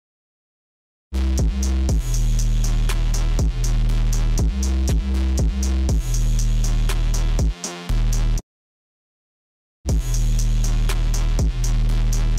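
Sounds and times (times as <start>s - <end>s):
instrumental music: 1.2s - 8.4s, 9.9s - 12.3s.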